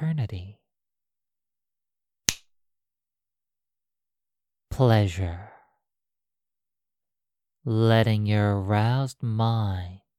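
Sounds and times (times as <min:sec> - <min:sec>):
finger snap: 0:02.3 - 0:02.5
speech: 0:04.8 - 0:05.5, 0:07.6 - 0:10.0.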